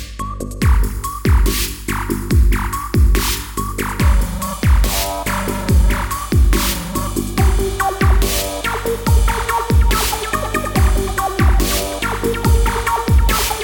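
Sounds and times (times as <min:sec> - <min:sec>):
industrial sound: 0:00.6 - 0:13.6.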